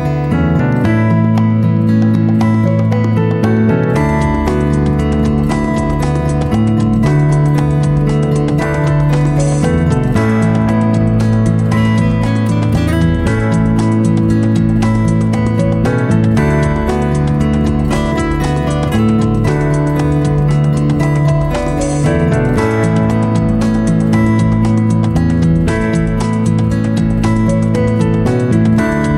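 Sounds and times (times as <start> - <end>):
American easy listening waltz music: 0.0 - 29.1.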